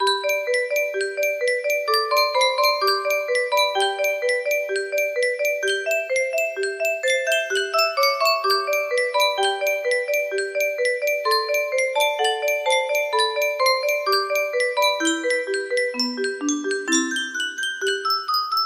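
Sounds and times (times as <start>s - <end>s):
melody: 0.0s - 18.6s.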